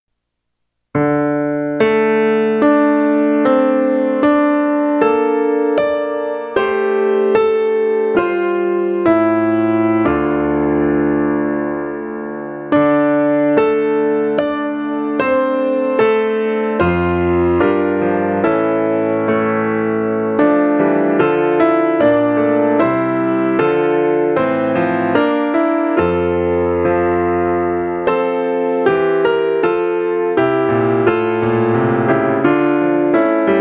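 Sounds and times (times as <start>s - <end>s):
instrumental Easter hymn: 0.9s - 33.5s.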